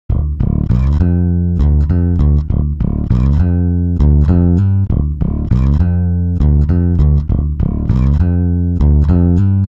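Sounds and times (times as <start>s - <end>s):
bass: 0.0s - 9.7s.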